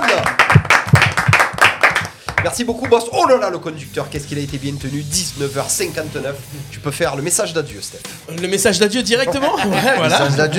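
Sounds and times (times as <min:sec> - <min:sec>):
audience applause: 0:00.0 - 0:03.0
speech: 0:02.6 - 0:10.5
laughter: 0:09.2 - 0:10.5.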